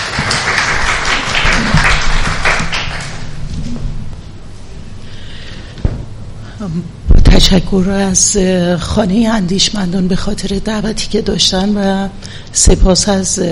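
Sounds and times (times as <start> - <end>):
audience applause: 0.0 - 3.4
speech: 6.6 - 13.5.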